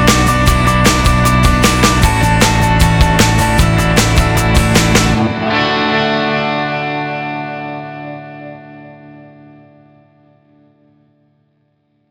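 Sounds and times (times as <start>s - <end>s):
inspirational happy upbeat corporate acoustic guitar music: 0.0s - 7.6s.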